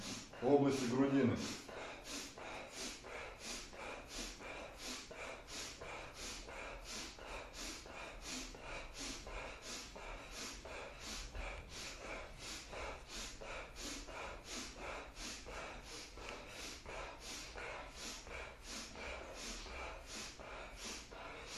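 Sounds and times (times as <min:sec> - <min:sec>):
kriya breathing exercise with forceful breathy inhales and exhales through the chest: 0:00.0 - 0:21.5
speech: 0:00.4 - 0:01.7.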